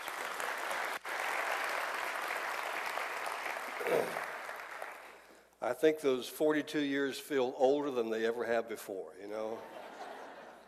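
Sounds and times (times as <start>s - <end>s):
audience applause welcoming a guest speaker at a church service: 0.0s - 5.3s
speech: 5.6s - 9.8s
laughter: 9.6s - 10.6s.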